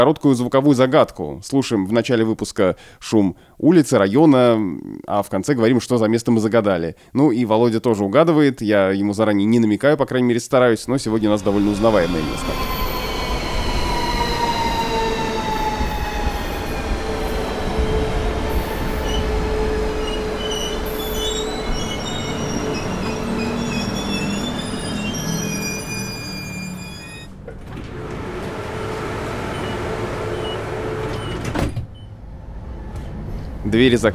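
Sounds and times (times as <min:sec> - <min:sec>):
speech: 0:00.0 - 0:12.9, 0:33.8 - 0:34.1
trains rumbling past at a train station: 0:11.0 - 0:31.4, 0:32.0 - 0:34.1
train wheels squealing: 0:11.1 - 0:27.4.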